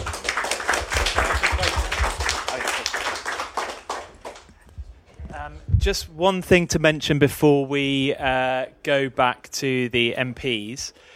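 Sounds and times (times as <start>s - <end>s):
group clapping: 0.0s - 4.8s
speech: 5.8s - 11.1s.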